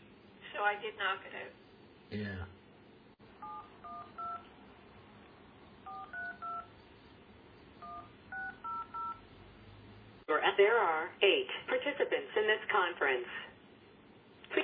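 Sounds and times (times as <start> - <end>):
low hiss: 0.0 - 14.6
speech: 0.6 - 2.6, 10.6 - 13.5
telephone keypad dialing tones: 3.4 - 4.5, 5.9 - 6.7, 7.8 - 9.2.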